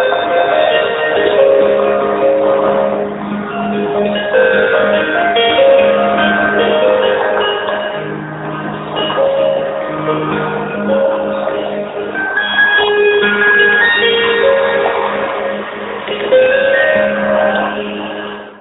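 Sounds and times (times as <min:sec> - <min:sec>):
autoharp: 0:00.0 - 0:18.5.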